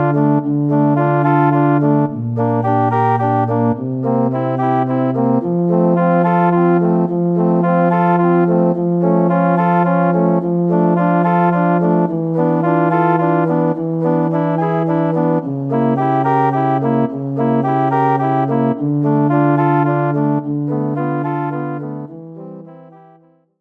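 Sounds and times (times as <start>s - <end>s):
organ playback backing track: 0.0s - 23.1s
viola solo: 0.0s - 23.5s.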